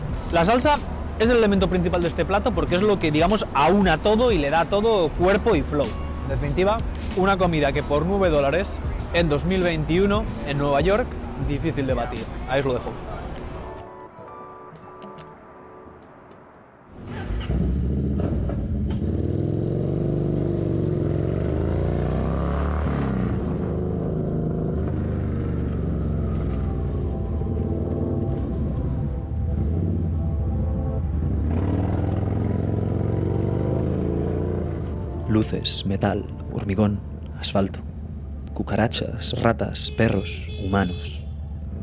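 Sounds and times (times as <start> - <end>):
speech: 0.3 - 13.2, 35.5 - 37.9, 38.6 - 41.2
motorcycle engine riding through city: 16.9 - 35.2.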